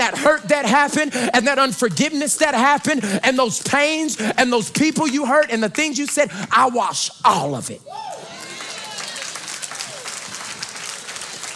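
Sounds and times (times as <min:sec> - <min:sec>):
speech: 0:00.1 - 0:08.3
audience clapping: 0:03.6 - 0:06.8, 0:08.1 - 0:11.5.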